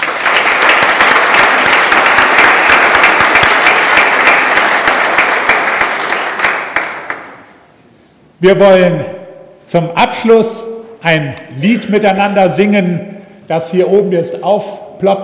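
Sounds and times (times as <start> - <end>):
sustained applause from a large audience: 0.0 - 7.4
speech: 8.4 - 9.1, 9.7 - 15.2.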